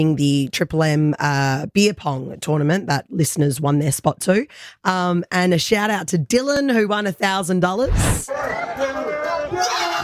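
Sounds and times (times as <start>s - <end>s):
speech: 0.0s - 8.9s
crowd cheering wildly at beer pong tournament: 8.2s - 10.0s.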